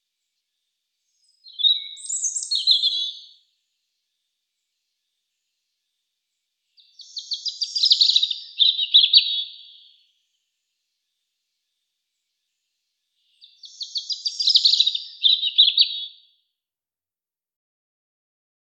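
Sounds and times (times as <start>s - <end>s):
European robin song: 1.0s - 5.9s, 6.6s - 16.3s.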